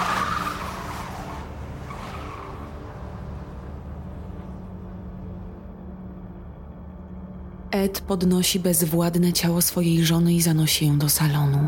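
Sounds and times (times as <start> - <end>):
car tires squealing: 0.0 - 4.8
car engine roaring as it speeds off: 0.0 - 6.2
speech: 7.7 - 11.6.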